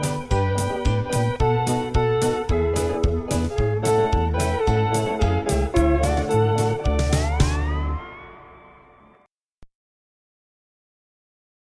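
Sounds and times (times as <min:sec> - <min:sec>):
march music: 0:00.0 - 0:08.7.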